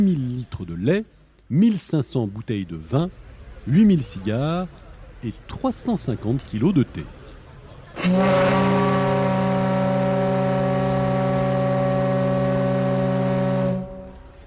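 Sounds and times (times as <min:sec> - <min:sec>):
speech: 0:00.0 - 0:07.2, 0:08.0 - 0:08.8
ocean liner's siren sounding: 0:08.0 - 0:14.4.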